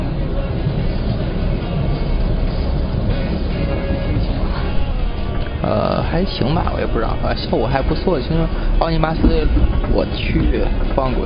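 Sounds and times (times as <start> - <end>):
train rushing past: 0.0 - 11.2
speech: 6.2 - 11.2.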